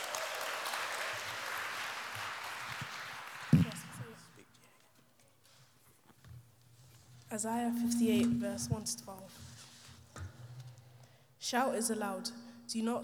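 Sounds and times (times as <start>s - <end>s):
audience applause: 0.0s - 4.4s
thump: 3.5s - 4.0s
quiet shuffling: 3.5s - 10.9s
speech: 7.4s - 9.5s, 11.5s - 13.0s.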